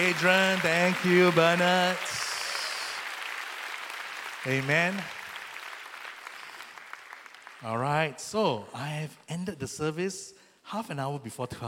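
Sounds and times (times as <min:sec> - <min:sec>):
speech: 0:00.0 - 0:02.2, 0:04.4 - 0:05.2, 0:07.6 - 0:11.6
audience applause: 0:00.0 - 0:08.0.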